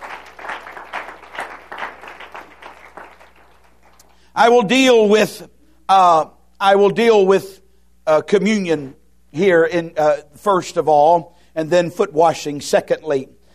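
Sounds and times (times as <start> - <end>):
audience applauding, hand clap of blessing: 0.0 - 4.3
speech: 4.4 - 13.4.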